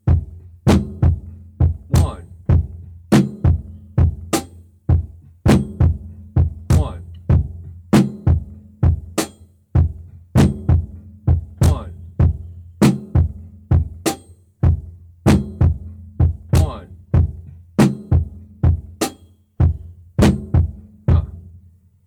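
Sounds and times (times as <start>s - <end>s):
drum beat: 0.0s - 21.7s
person vocalizing drum syllables: 1.9s - 2.4s, 6.7s - 7.2s, 11.6s - 12.1s, 16.5s - 17.0s, 21.1s - 21.4s.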